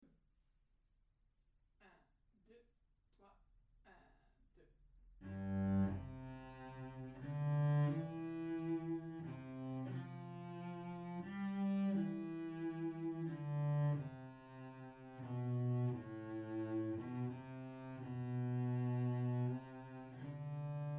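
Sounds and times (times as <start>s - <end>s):
slow solo cello: 5.2s - 20.9s.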